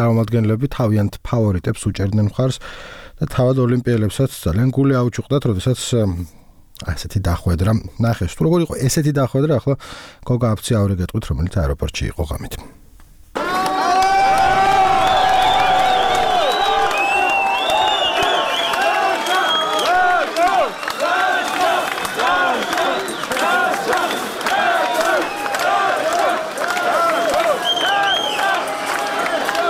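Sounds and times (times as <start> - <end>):
speech: 0.0 - 12.8
fans cheering Georgian Olympians at Tbilisi airport at night: 13.4 - 29.6.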